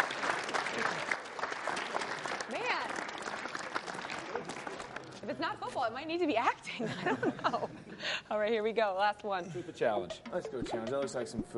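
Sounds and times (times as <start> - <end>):
small group clapping during a truth-or-challenge game: 0.0 - 5.8
speech: 5.5 - 11.5.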